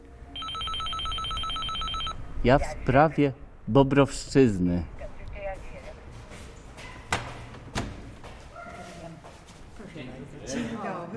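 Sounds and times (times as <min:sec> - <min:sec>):
telephone ringing: 0:00.3 - 0:02.2
speech: 0:02.4 - 0:04.9.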